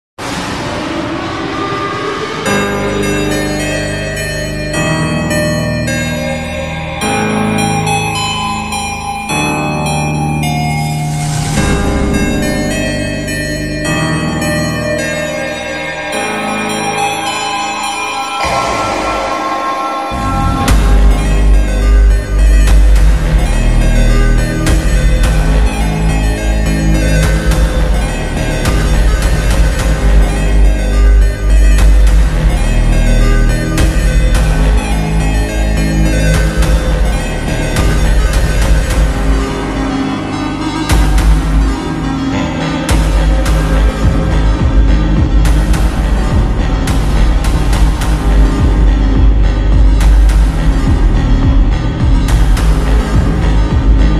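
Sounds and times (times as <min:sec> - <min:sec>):
ultra slowed phonk music: 0:00.2 - 0:54.1.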